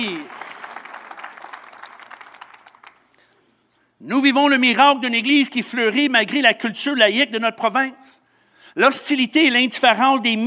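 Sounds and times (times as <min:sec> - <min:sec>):
audience applause: 0:00.0 - 0:03.0
speech: 0:04.0 - 0:08.2, 0:08.8 - 0:10.4.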